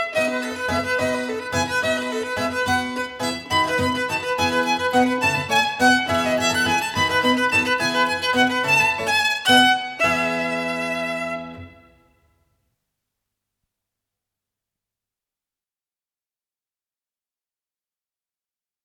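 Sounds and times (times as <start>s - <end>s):
violin playing a sonatina in E major: 0.0s - 12.2s.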